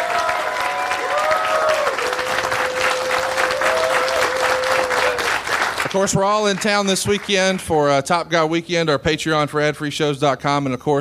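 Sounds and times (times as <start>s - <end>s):
round of applause: 0.0s - 7.8s
speech: 6.0s - 10.9s.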